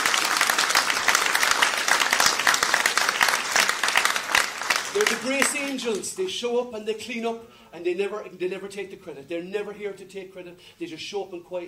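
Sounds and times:
audience applause: 0.0 - 6.0
speech: 5.0 - 11.6.

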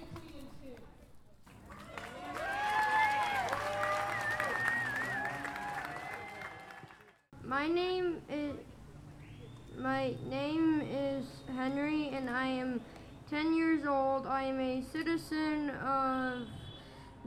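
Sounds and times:
rally crowd applause with cheers and whoops: 1.6 - 7.2
speech: 7.6 - 8.4, 9.8 - 16.6.

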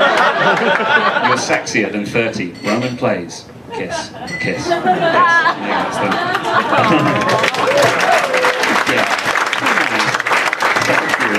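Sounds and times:
audience applause: 0.0 - 1.4, 6.0 - 11.3
laughter: 0.0 - 2.0, 3.7 - 11.3
speech: 0.4 - 8.3, 8.9 - 9.2
scattered cheers: 7.0 - 10.1.

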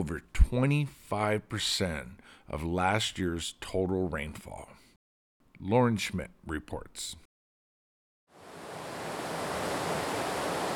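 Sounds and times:
speech: 0.0 - 4.8, 5.6 - 7.2
Mattole River flowing near a swimming hole in Whitethorn: 8.4 - 10.7.

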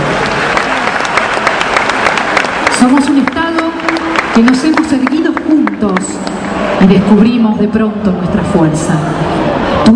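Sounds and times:
audience applause: 0.0 - 6.9
speech: 2.8 - 3.5, 4.4 - 5.2, 5.8 - 9.9.

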